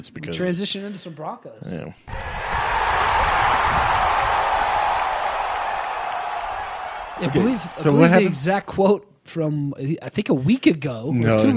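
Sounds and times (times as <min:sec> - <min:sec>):
speech: 0:00.0 - 0:02.4, 0:07.2 - 0:11.5
crowd cheering and murmuring sound effect: 0:02.1 - 0:08.3.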